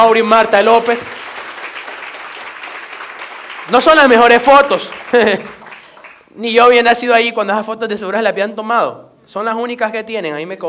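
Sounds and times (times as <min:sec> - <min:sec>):
speech: 0:00.0 - 0:01.2, 0:03.7 - 0:05.6, 0:06.4 - 0:10.6
audience applause: 0:00.4 - 0:06.3
laughter: 0:05.1 - 0:05.6.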